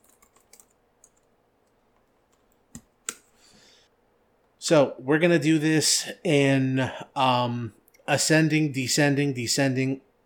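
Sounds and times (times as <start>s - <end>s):
faint keyboard typing as team names are written down: 0.0s - 3.3s
speech: 4.7s - 10.1s.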